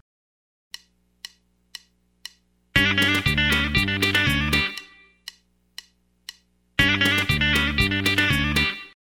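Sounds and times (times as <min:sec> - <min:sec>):
country rock music: 0:02.8 - 0:04.8, 0:06.8 - 0:08.8.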